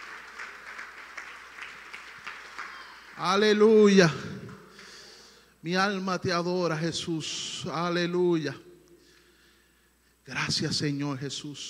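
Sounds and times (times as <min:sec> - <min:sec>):
audience applause: 0:00.0 - 0:03.2
speech: 0:03.2 - 0:04.3, 0:05.6 - 0:08.7, 0:10.3 - 0:11.6.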